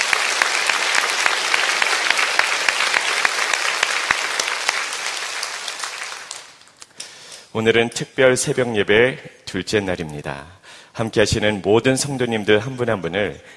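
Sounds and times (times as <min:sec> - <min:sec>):
audience applauding: 0:00.0 - 0:06.8
speech: 0:07.6 - 0:13.5.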